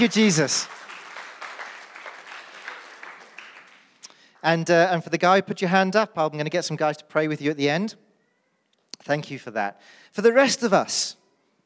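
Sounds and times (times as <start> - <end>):
speech: 0.0 - 0.8, 4.4 - 8.1, 9.0 - 11.2
audience applause: 0.0 - 4.0.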